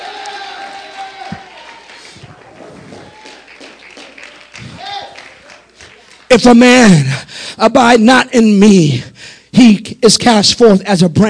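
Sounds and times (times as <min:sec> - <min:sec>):
audience applause: 0:00.0 - 0:06.4
crowd shouting and cheering: 0:00.0 - 0:06.4
speech: 0:06.3 - 0:11.2.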